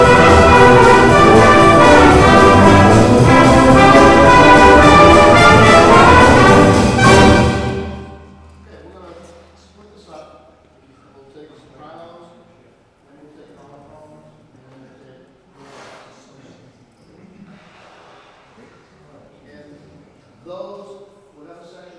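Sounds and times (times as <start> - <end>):
brass cantina music: 0.0 - 8.6.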